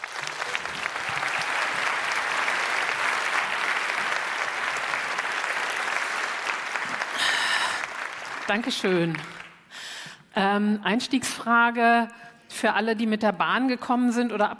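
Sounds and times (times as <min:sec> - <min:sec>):
audience applause: 0:00.0 - 0:09.7
speech: 0:08.5 - 0:09.4, 0:10.4 - 0:14.5.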